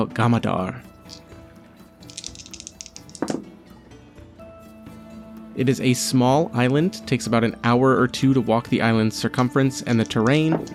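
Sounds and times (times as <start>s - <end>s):
speech: 0.0s - 1.2s, 5.6s - 10.7s
dice rolling: 2.1s - 3.4s, 9.9s - 10.7s.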